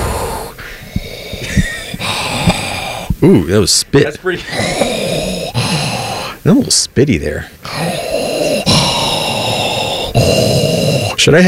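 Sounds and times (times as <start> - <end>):
voice imitating Darth Vader's mechanical breathing: 0.0 - 6.8, 7.4 - 11.4
speech: 3.2 - 5.0, 6.4 - 8.7, 11.2 - 11.4.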